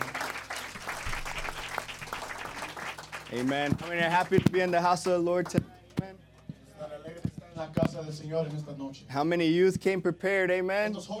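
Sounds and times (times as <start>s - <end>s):
audience applause: 0.0s - 5.2s
speech: 3.3s - 5.7s, 8.0s - 11.1s.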